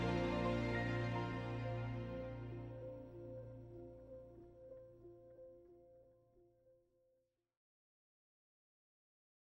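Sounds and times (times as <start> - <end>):
choir bass voice singing: 0.0 - 2.8.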